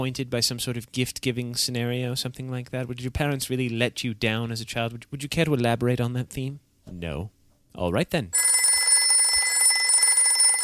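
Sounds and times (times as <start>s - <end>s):
speech: 0.0s - 8.6s
telephone ringing: 8.4s - 10.6s.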